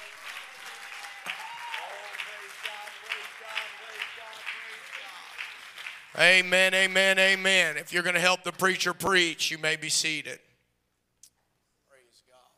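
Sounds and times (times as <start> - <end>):
crowd clapping hands: 0.0 - 7.2
speech: 6.2 - 10.5.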